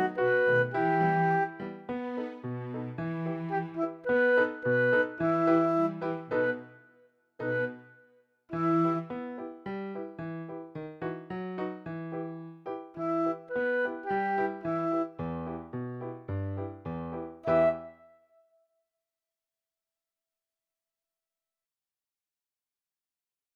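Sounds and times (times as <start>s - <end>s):
piano trio playing: 0.0s - 6.8s, 7.4s - 18.1s.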